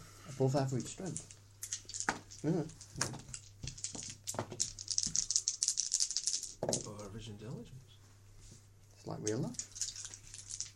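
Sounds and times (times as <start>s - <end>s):
speech: 0.4s - 1.4s, 2.4s - 3.3s, 6.6s - 7.9s, 9.0s - 9.7s
dice rolling: 0.8s - 7.0s, 9.3s - 10.7s.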